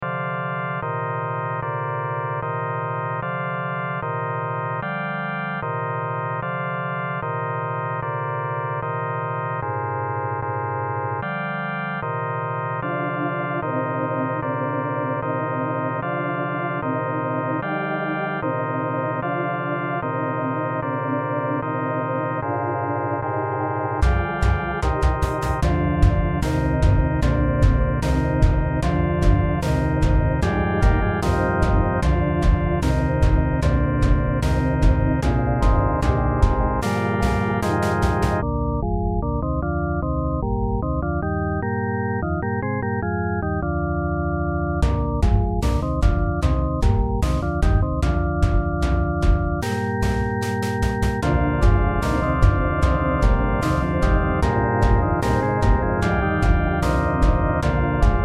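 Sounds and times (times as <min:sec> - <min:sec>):
epic organ music: 0:00.0 - 0:58.2.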